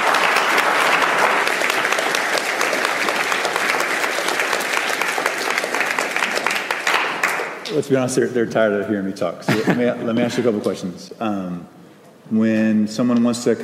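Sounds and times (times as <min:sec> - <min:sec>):
audience clapping: 0:00.0 - 0:07.9
speech: 0:07.7 - 0:13.6
laughter: 0:09.4 - 0:10.5.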